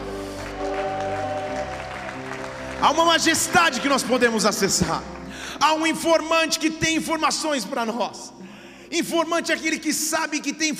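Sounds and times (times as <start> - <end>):
audience applause: 0.0 - 5.6
speech: 2.8 - 10.7.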